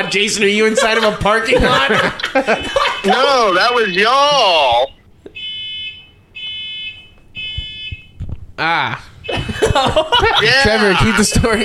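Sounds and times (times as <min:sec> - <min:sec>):
speech: 0:00.1 - 0:05.0, 0:08.6 - 0:11.6
laughter: 0:00.2 - 0:03.8, 0:09.2 - 0:11.6
smoke detector alarm beeping: 0:02.6 - 0:08.2, 0:09.2 - 0:09.8.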